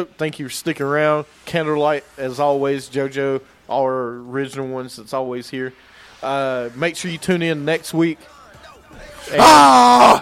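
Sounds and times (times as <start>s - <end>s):
speech: 0.0s - 10.2s
people screaming: 9.2s - 10.2s.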